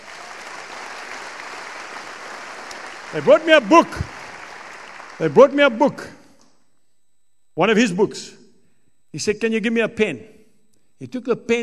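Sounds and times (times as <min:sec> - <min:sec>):
church congregation clapping during a revival-style sermon: 0:00.0 - 0:06.4
speech: 0:03.1 - 0:04.2, 0:05.2 - 0:06.2, 0:07.6 - 0:08.4, 0:09.1 - 0:10.4, 0:11.0 - 0:11.6.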